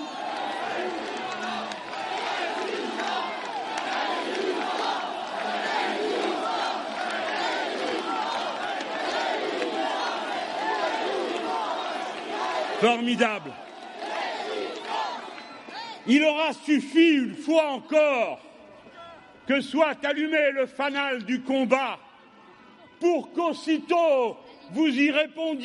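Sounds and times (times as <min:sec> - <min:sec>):
large crowd chanting in unison: 0:00.0 - 0:16.2
speech: 0:12.8 - 0:13.7, 0:16.1 - 0:18.5, 0:19.5 - 0:22.0, 0:23.0 - 0:25.6.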